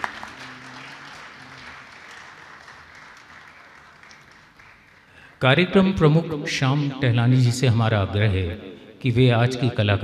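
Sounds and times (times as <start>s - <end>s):
audience applause: 0.0s - 5.4s
speech: 5.4s - 10.0s.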